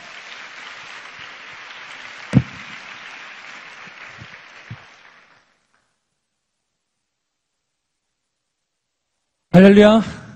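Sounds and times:
audience applause: 0:00.0 - 0:05.6
speech: 0:09.6 - 0:10.2.

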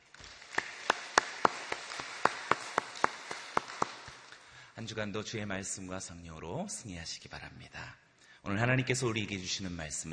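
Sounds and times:
audience applause: 0:00.0 - 0:04.4
speech: 0:04.8 - 0:10.1.

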